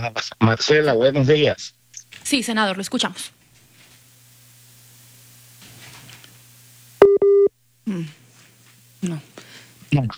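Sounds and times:
speech: 0:00.0 - 0:03.4, 0:09.0 - 0:09.3, 0:09.9 - 0:10.1
telephone busy tone after dropped call: 0:07.0 - 0:07.6.

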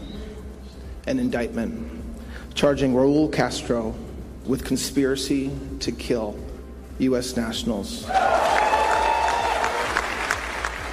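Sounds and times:
speech: 0:01.0 - 0:02.0, 0:02.6 - 0:08.4
audience applause: 0:08.2 - 0:10.9.

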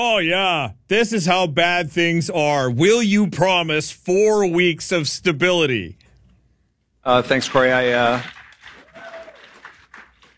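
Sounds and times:
speech: 0:00.0 - 0:06.0, 0:07.0 - 0:08.4
audience applause: 0:07.4 - 0:10.3
whistles and cheering voices: 0:08.8 - 0:09.7.

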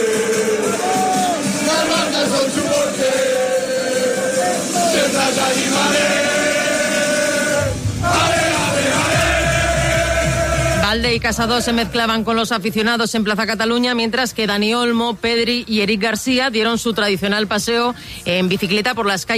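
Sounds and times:
crowd cheering and shouting at a nightclub celebration: 0:00.0 - 0:11.9
speech: 0:10.9 - 0:19.3.

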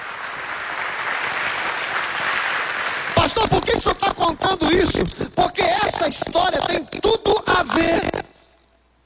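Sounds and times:
audience applause: 0:00.0 - 0:03.4
speech: 0:03.3 - 0:08.3.

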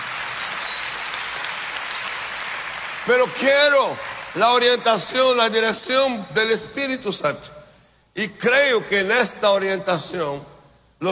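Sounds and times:
church congregation applause: 0:00.0 - 0:05.6
speech: 0:03.1 - 0:07.6, 0:08.2 - 0:11.1.

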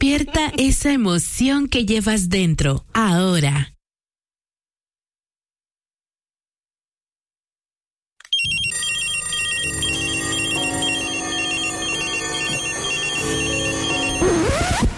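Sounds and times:
speech: 0:00.1 - 0:03.7
alarm clock ringing: 0:08.3 - 0:14.6.

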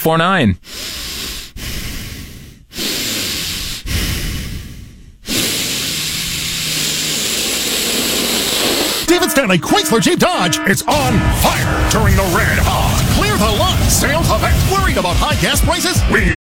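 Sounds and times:
speech: 0:00.0 - 0:00.9, 0:09.4 - 0:16.4
heavy nose breathing into a microphone during a video call: 0:00.6 - 0:10.7.

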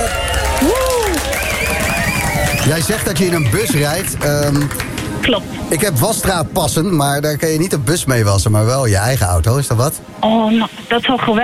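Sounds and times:
applause: 0:00.0 - 0:05.3
speech: 0:02.7 - 0:11.4.

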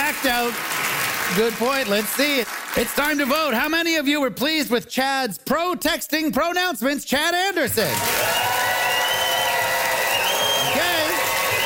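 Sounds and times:
studio audience cheering and applauding: 0:00.0 - 0:03.6, 0:07.8 - 0:11.6
speech: 0:00.2 - 0:08.6.

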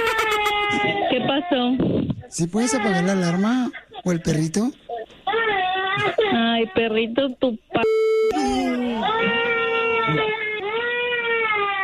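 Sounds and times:
baby girl crying: 0:00.0 - 0:01.7, 0:02.6 - 0:04.2, 0:05.3 - 0:06.6, 0:08.3 - 0:11.8
speech: 0:01.4 - 0:04.8, 0:06.0 - 0:09.5.

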